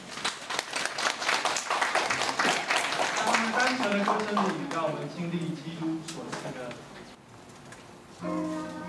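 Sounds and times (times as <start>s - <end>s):
audience applause: 0.0s - 5.1s
speech: 3.7s - 6.9s, 8.2s - 8.6s.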